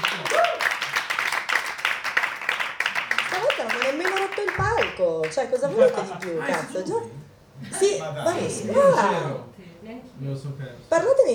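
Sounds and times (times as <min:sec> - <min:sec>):
audience applause at a comedy show: 0:00.0 - 0:06.8
speech: 0:05.0 - 0:11.3.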